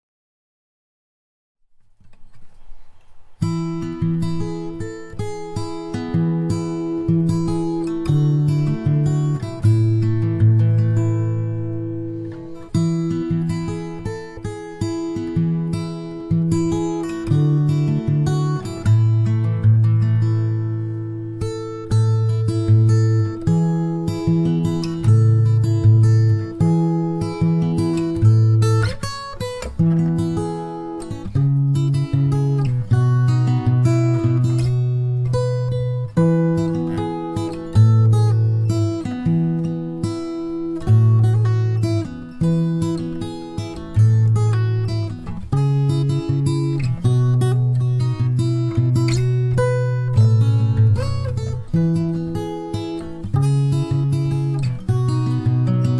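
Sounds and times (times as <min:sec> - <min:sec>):
acoustic instrumental music: 0:01.7 - 0:55.9.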